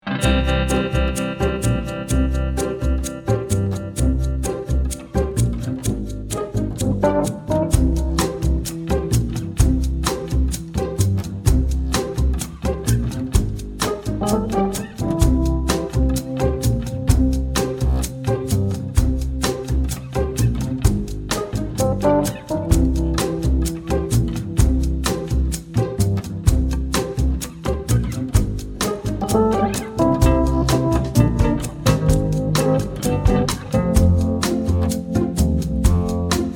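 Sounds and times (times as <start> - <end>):
shaker groove: 0.2 - 36.5.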